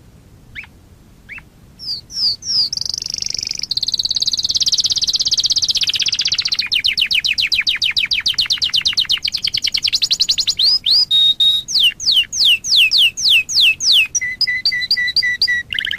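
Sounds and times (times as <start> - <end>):
nightingale song: 0.4 - 15.9.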